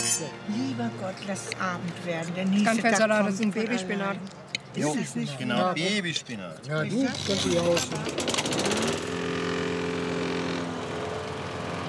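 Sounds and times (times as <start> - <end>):
speech: 0.2 - 8.7
neighbour's lawn mower engine droning: 7.2 - 11.8.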